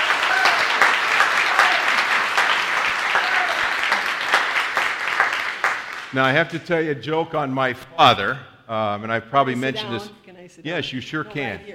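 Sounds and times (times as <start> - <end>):
congregation clapping: 0.0 - 6.6
speech: 6.1 - 11.7.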